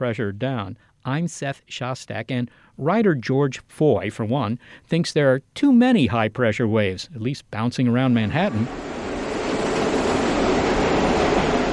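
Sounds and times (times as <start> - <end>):
speech: 0.0 - 8.9
subway trains roaring: 8.1 - 11.7.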